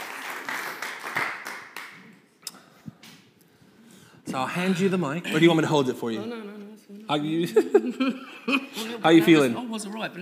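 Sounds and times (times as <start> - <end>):
small crowd applause: 0.0 - 2.0
speech: 4.4 - 10.1
laughter: 7.4 - 9.6.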